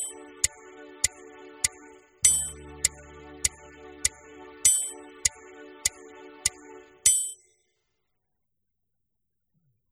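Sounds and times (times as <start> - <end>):
warm-up exercise playalong music: 0.0 - 7.3.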